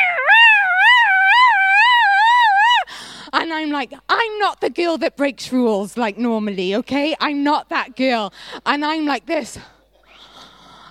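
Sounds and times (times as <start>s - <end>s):
voice imitating wailing sirens: 0.0s - 2.8s
speech: 3.5s - 9.8s.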